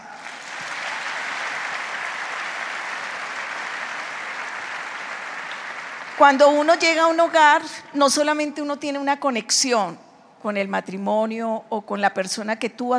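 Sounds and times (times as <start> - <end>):
audience applause: 0.0 - 7.4
speech: 6.2 - 12.9.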